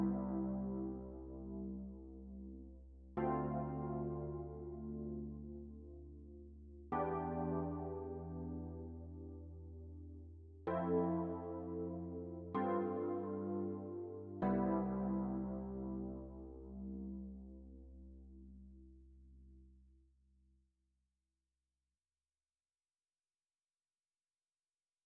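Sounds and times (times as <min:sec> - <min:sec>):
electric piano: 0:00.0 - 0:18.6.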